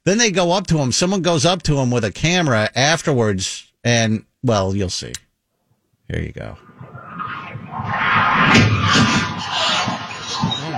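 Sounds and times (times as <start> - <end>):
speech: 0.0 - 5.2, 6.1 - 6.7
speeding car engine roaring: 6.6 - 10.7
car crashing into parked cars with crunching impacts and scraping metal: 7.8 - 10.7.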